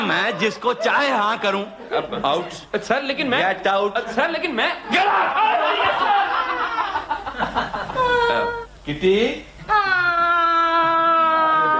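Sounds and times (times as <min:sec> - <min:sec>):
laughter: 0:00.0 - 0:02.6, 0:04.9 - 0:08.6
speech: 0:00.1 - 0:06.4, 0:07.6 - 0:10.1
girl crying: 0:08.0 - 0:08.7, 0:09.7 - 0:11.7.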